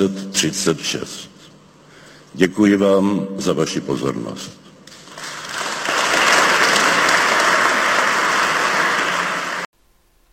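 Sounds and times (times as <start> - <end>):
speech: 0.0 - 1.4, 2.3 - 4.7
closing applause: 4.9 - 9.7.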